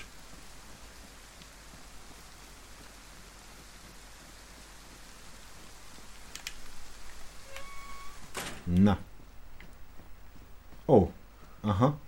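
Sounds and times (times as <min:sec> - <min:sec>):
heavy rain: 0:00.0 - 0:12.0
faint clicks: 0:06.2 - 0:07.2
brief thin tone: 0:07.4 - 0:08.2
speech: 0:08.7 - 0:09.1, 0:10.9 - 0:12.0.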